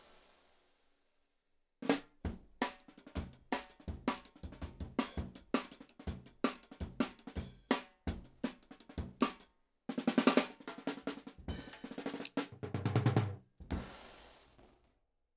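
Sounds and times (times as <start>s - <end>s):
drum and bass jungle beat: 2.3s - 9.4s, 10.0s - 14.3s.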